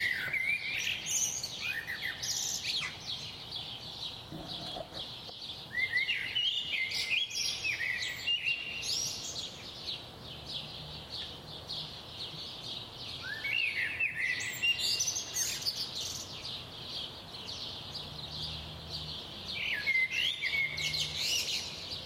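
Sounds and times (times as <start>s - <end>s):
birds chirping: 0.0s - 22.0s
steady hiss: 0.0s - 22.0s.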